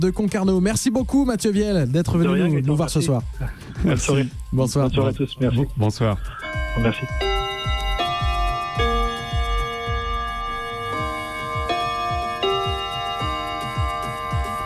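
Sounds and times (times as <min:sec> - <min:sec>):
speech: 0:00.0 - 0:07.3
steady regular ticking like a clock: 0:00.0 - 0:14.6
radio station time chime with bright bell-like tones: 0:06.2 - 0:14.6.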